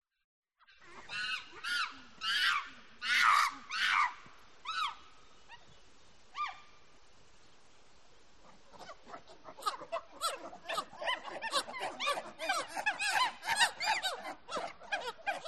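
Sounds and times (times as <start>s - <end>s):
monkeys calling with shrill squeals and honking cries: 0.8s - 5.8s, 8.5s - 15.4s.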